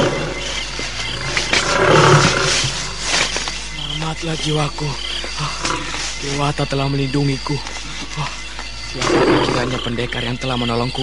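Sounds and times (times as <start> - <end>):
male tiger roaring loudly: 0.0 - 3.3, 8.0 - 10.1
speech: 4.2 - 8.3, 8.9 - 11.0.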